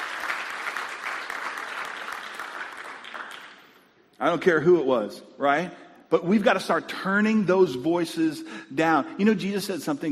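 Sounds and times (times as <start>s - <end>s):
audience applause: 0.0s - 3.8s
speech: 4.2s - 10.1s.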